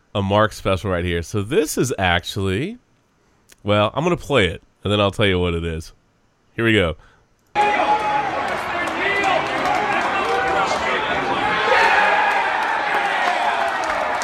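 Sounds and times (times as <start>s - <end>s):
speech: 0.2s - 2.8s, 3.6s - 6.0s, 6.6s - 7.8s
casino sports bettors cheering: 7.6s - 14.2s
clapping: 8.0s - 11.2s, 12.2s - 14.2s.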